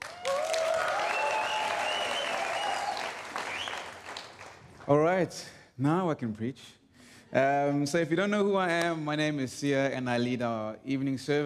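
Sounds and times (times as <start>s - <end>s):
audience whoops and cheers: 0.0s - 3.9s
church audience applause: 0.0s - 4.9s
speech: 4.9s - 11.4s.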